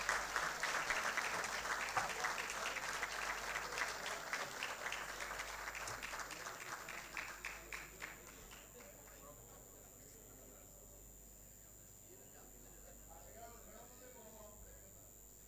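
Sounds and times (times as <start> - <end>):
audience applause: 0.0 - 9.3.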